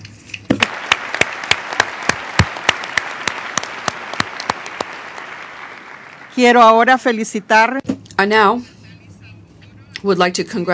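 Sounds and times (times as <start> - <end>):
audience applause: 0.6 - 6.9
speech: 6.4 - 8.7, 10.0 - 10.7.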